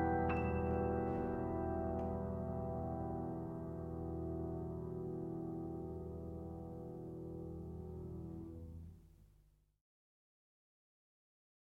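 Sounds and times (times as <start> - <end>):
piano playing: 0.0 - 8.9.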